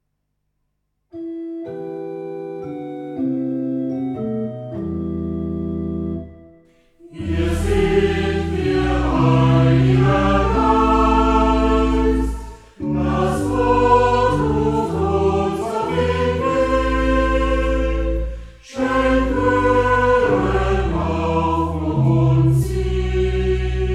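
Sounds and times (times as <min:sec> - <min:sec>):
house organ playing: 0:01.1 - 0:23.9
calling choir: 0:07.0 - 0:23.9.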